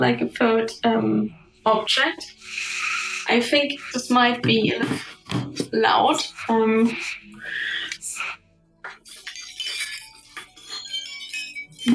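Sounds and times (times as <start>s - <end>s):
speech: 0.0s - 2.7s, 3.3s - 8.4s
wind chime tinkling: 9.1s - 11.9s.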